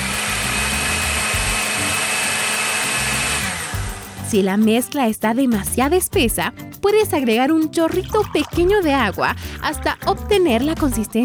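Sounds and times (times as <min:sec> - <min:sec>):
blender puréeing carrots and chestnuts: 0:00.0 - 0:04.3
speech: 0:04.3 - 0:11.2.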